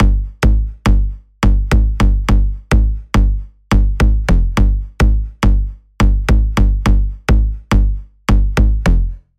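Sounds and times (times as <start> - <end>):
Sylenth1 synth bass: 0.0 - 9.3.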